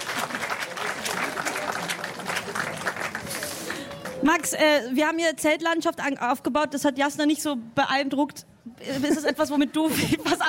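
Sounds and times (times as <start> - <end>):
audience applause: 0.0 - 4.5
speech: 4.2 - 10.4.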